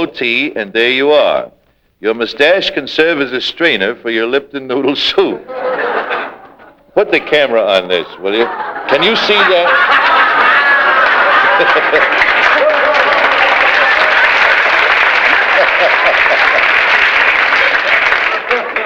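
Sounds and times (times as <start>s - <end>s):
speech: 0.0s - 6.1s, 7.0s - 10.3s, 11.6s - 12.3s
laughter: 5.2s - 18.8s
audience applauding: 8.3s - 18.8s.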